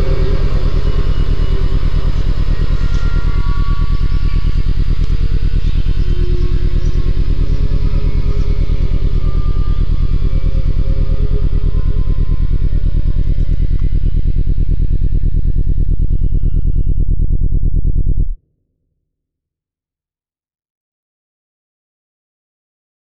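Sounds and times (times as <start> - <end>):
strange noises: 0.0 - 18.3.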